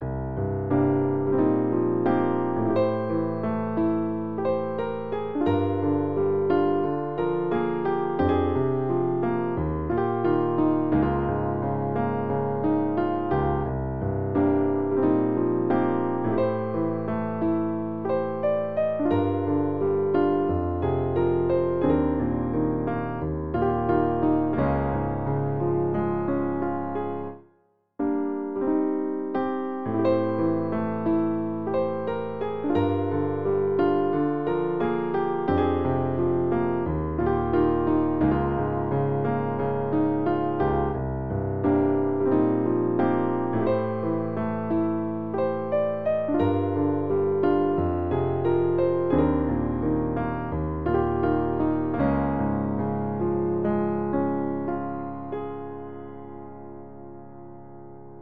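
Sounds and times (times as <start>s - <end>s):
piano: 0.0s - 58.1s.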